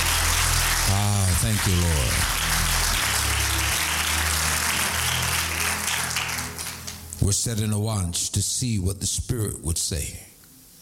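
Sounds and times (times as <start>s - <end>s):
audience clapping hands: 0.0s - 7.2s
speech: 1.4s - 2.4s, 7.3s - 10.3s.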